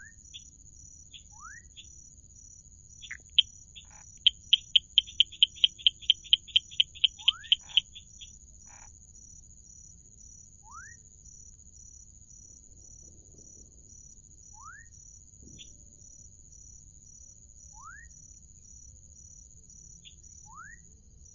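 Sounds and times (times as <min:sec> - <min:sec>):
Dendropsophus rubicundulus: 0:00.0 - 0:02.0, 0:03.0 - 0:09.0, 0:10.6 - 0:11.0, 0:14.5 - 0:15.7, 0:17.7 - 0:18.3, 0:20.0 - 0:20.9.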